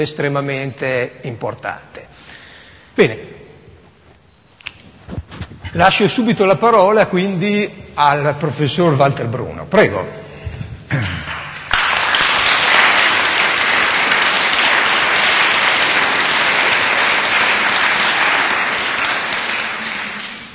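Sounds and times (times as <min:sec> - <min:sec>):
speech: 0:00.0 - 0:02.0, 0:03.0 - 0:03.3, 0:05.7 - 0:10.2
audience applause: 0:11.2 - 0:20.5.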